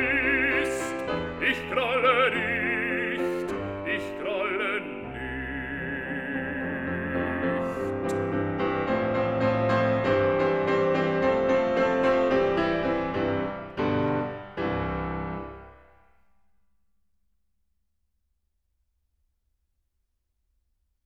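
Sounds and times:
person singing a song cycle: 0.0 - 8.6
piano: 0.0 - 16.4.

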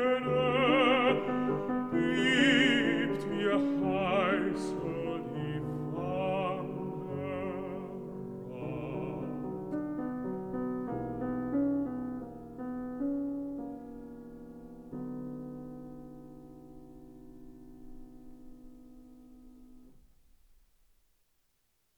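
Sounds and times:
voice: 0.0 - 1.3, 2.0 - 9.4
piano: 0.0 - 21.6.

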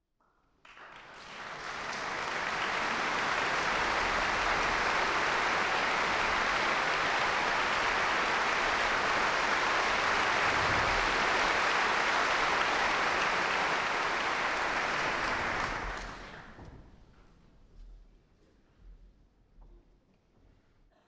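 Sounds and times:
applause: 0.6 - 16.9.

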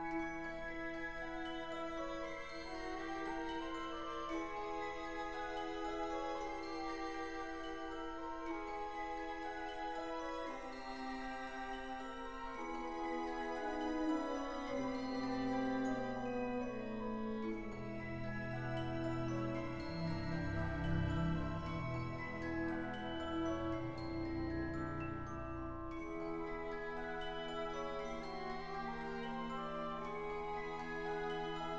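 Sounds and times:
symphonic poem: 0.0 - 31.7.

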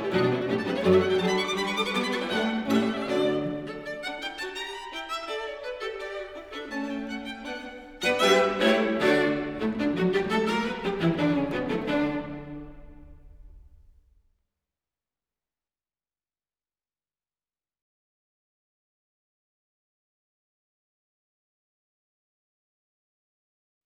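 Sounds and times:
string quartet in D major: 0.0 - 13.7.

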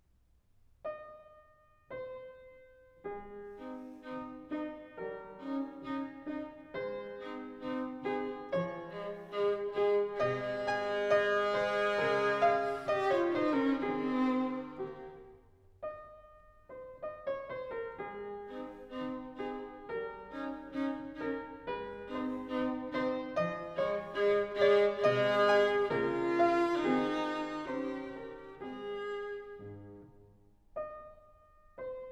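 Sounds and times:
violin and piano sonata slow movement: 3.3 - 15.4, 17.7 - 30.1.

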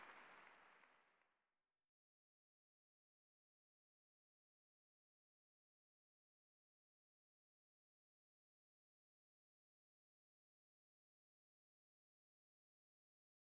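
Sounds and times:
applause: 0.0 - 1.2.

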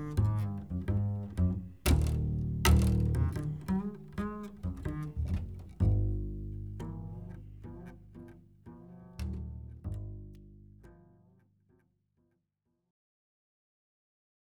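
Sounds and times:
electroacoustic cello: 0.0 - 11.4.

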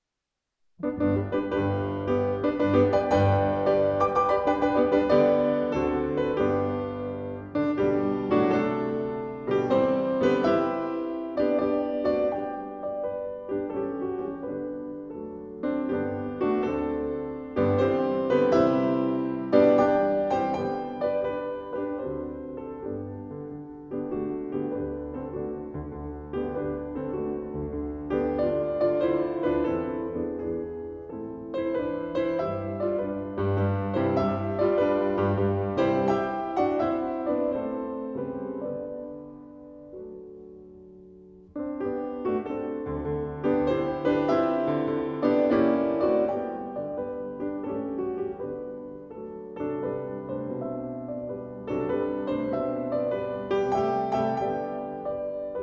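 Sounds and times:
piano piece in G major: 0.8 - 55.6.

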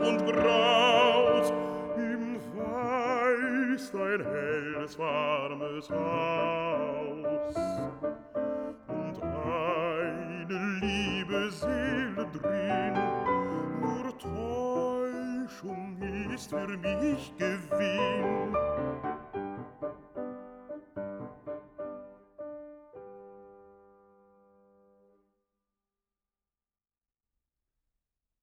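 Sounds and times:
song cycle for voice and piano: 0.0 - 19.1.

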